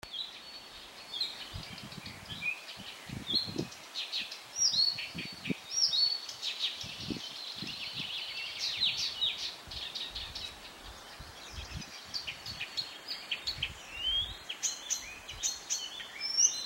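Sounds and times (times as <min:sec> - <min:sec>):
bush warbler singing: 0:00.0 - 0:16.6.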